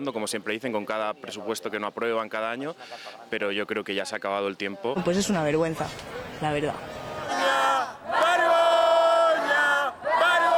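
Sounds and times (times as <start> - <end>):
speech: 0.0 - 7.0
protesters chanting shame: 6.0 - 10.5.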